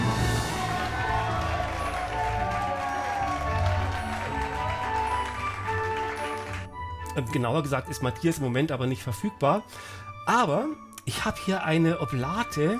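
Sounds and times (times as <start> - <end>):
crowd clapping: 0.0 - 7.4
speech: 7.2 - 12.7.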